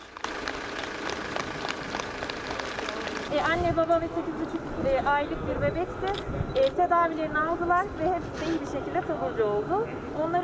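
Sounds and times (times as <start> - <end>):
crowd clapping as hospital patients are discharged: 0.0 - 3.3
speech: 3.3 - 10.4.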